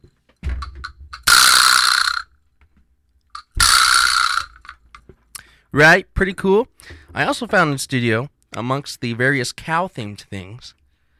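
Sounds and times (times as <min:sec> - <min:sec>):
vibraslap percussion instrument rattle: 0:00.4 - 0:02.4, 0:03.4 - 0:05.1
speech: 0:05.7 - 0:10.8.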